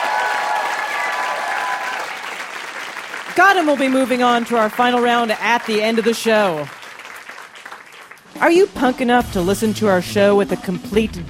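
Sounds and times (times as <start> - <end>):
studio audience applause: 0.0 - 8.3
speech: 3.4 - 6.8, 8.4 - 11.2.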